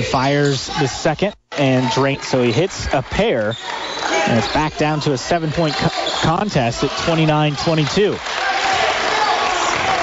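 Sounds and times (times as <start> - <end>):
speech: 0.0 - 8.5
gym crowd noise: 0.0 - 10.0
bench players clapping in a gym: 1.6 - 10.0.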